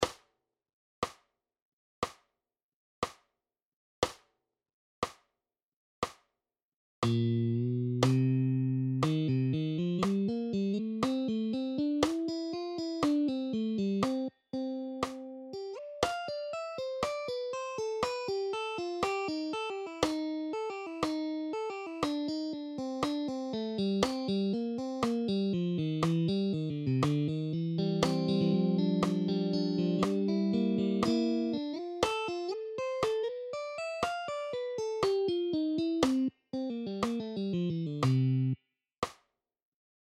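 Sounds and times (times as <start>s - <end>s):
guitar at 60 bpm: 7.1s - 38.6s.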